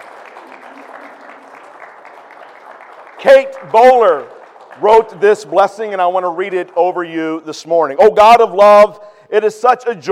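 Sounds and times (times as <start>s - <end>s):
church congregation applause for mothers on Mother's Day: 0.0s - 7.5s
speech: 3.2s - 10.0s.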